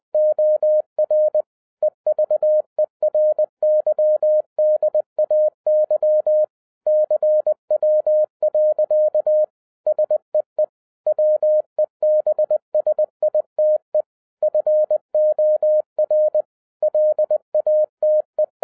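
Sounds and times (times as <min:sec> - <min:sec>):
Morse code: 0:00.2 - 0:01.4, 0:02.1 - 0:10.2, 0:11.1 - 0:13.8, 0:14.4 - 0:18.6.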